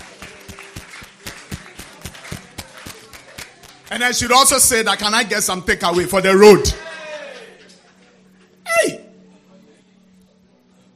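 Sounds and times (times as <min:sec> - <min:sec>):
audience clapping hands: 0:00.0 - 0:06.7
speech: 0:03.9 - 0:06.8.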